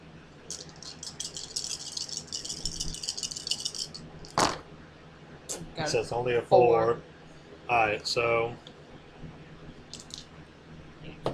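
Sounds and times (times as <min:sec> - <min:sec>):
dice being rolled, rattling and clattering: 0:00.5 - 0:04.6, 0:09.9 - 0:10.2
speech: 0:05.8 - 0:07.1, 0:07.7 - 0:08.7.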